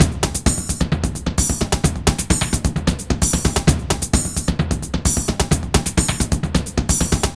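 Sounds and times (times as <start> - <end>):
drum loop: 0.0 - 7.3.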